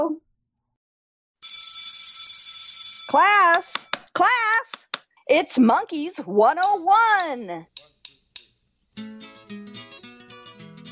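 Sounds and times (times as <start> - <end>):
speech: 0.0 - 0.2, 3.1 - 7.9
bell ringing: 1.4 - 4.0.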